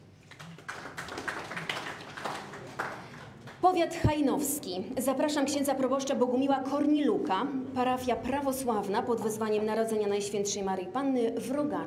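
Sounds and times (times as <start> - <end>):
crowd applauding: 0.0 - 3.6
speech: 3.6 - 11.8.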